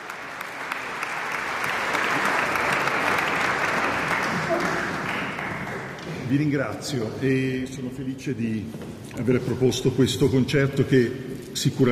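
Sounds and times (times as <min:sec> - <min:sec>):
audience applause after a violin concert: 0:00.0 - 0:06.1
speech: 0:06.3 - 0:11.8.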